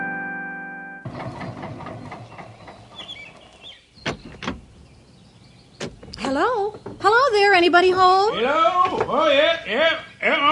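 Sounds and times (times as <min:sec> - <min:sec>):
old car engine starting and chugging: 0:01.0 - 0:07.3
speech: 0:06.3 - 0:10.5.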